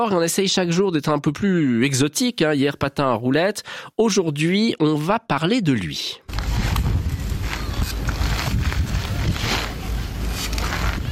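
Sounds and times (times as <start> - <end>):
speech: 0.0 - 6.3
someone riding a unicycle back and forth: 6.3 - 11.1.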